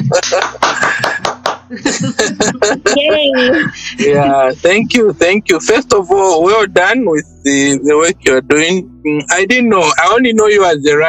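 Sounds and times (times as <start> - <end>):
laughter: 0.0 - 6.7
hands clapping: 0.1 - 1.7
speech: 0.2 - 1.1, 1.7 - 11.0.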